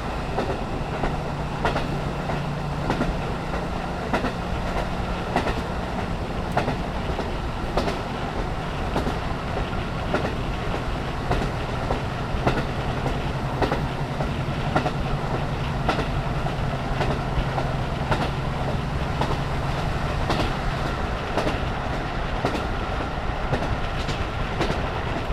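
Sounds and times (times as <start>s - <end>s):
rail joint sound of KiHa 54-518 train: 0.0s - 25.3s.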